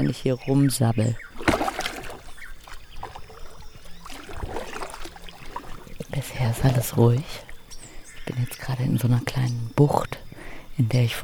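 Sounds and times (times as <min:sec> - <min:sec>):
speech: 0:00.0 - 0:01.3, 0:06.6 - 0:07.5, 0:08.3 - 0:10.2, 0:10.8 - 0:11.2
paddling a boat on a river: 0:01.1 - 0:08.6.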